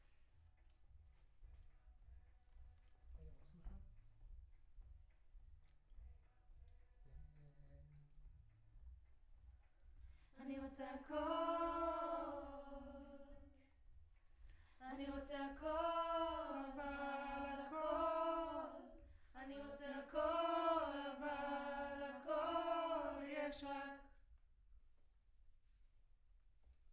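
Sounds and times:
choir singing: 10.4 - 13.6, 14.8 - 24.1.

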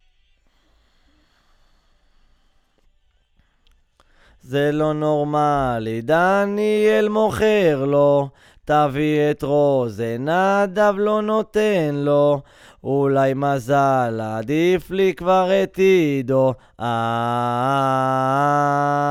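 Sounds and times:
guide vocal: 4.2 - 19.1.

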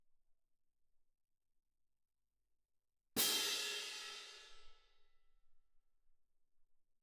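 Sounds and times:
percussion: 3.2 - 4.8.

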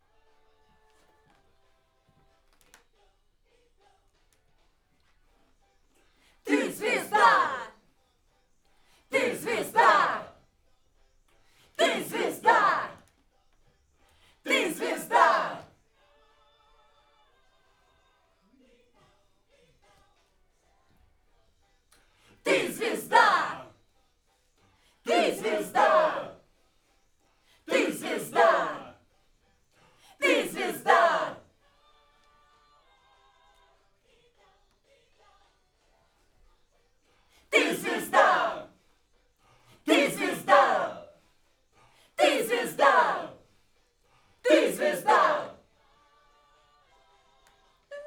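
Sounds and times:
backing vocals on AKG microphone: 6.5 - 7.7, 9.2 - 10.3, 11.8 - 13.0, 14.5 - 15.6, 22.5 - 23.7, 25.1 - 26.4, 27.7 - 28.9, 30.2 - 31.4, 37.6 - 38.7, 39.9 - 41.1, 42.2 - 43.4, 44.5 - 45.6.

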